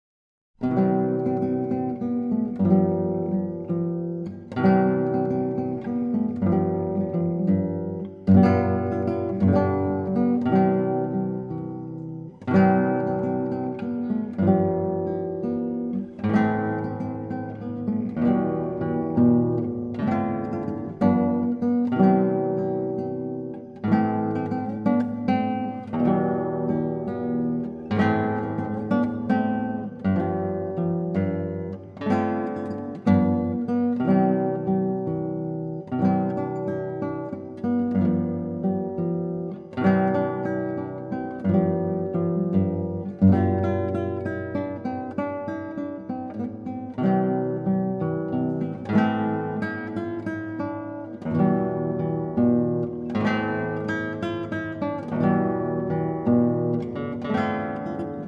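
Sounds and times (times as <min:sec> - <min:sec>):
guitar: 0:00.6 - 0:58.2.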